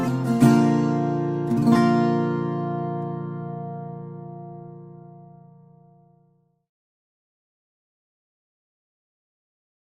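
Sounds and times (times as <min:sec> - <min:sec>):
mahogany and Sitka Veillette Terz 6 guitar playing: 0:00.0 - 0:06.6.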